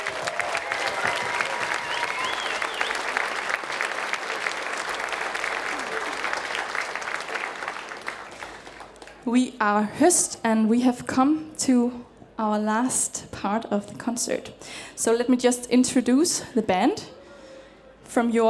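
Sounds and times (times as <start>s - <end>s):
concert audience clapping at a folk band's show: 0.0s - 9.3s
audience voices and whistles: 1.8s - 3.1s
speech: 9.3s - 17.1s, 18.1s - 18.4s.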